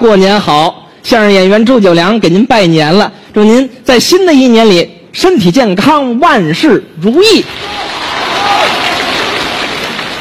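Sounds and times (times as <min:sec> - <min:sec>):
speech: 0:00.0 - 0:08.0
audience applause at a Lunar New Year crosstalk comedy performance: 0:07.6 - 0:10.2.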